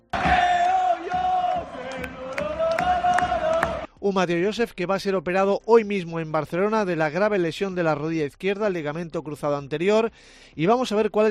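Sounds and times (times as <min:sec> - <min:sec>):
Mallorca football supporters roaring in a stadium: 0:00.0 - 0:03.9
speech: 0:04.0 - 0:11.3.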